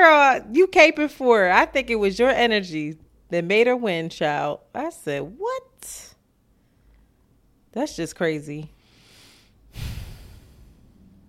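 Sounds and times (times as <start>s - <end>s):
speech: 0.3s - 6.1s, 7.8s - 8.8s
sharp intake of breath: 8.8s - 11.1s.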